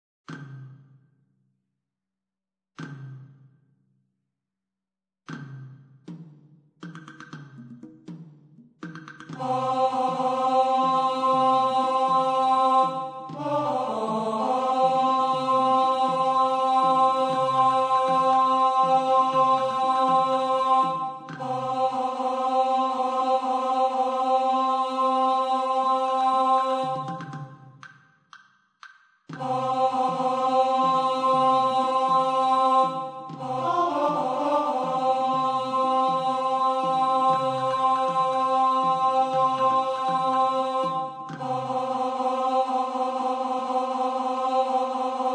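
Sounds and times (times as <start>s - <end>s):
tenor singing: 9.4s - 27.5s, 29.4s - 45.3s.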